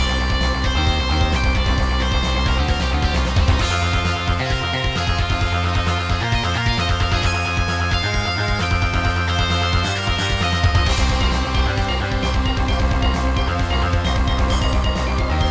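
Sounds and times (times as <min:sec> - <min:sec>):
synthesizer music from a sound module: 0:00.0 - 0:15.4.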